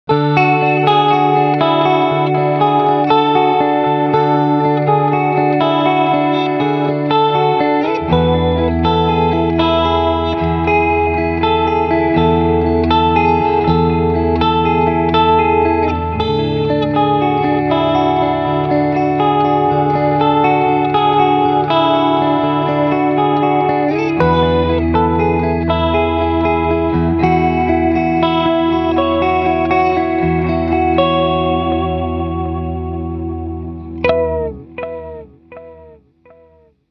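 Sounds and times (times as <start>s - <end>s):
chorus and delay effect: 0.1s - 36.8s.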